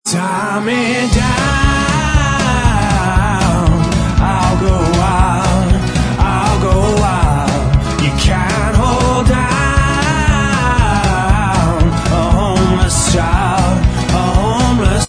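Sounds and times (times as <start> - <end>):
backing vocals: 0.0 - 15.0.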